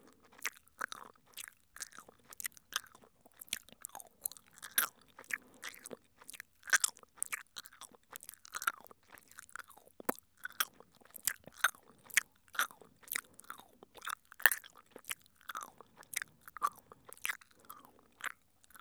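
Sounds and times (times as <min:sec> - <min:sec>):
chewing sounds on the right: 0:00.0 - 0:18.7.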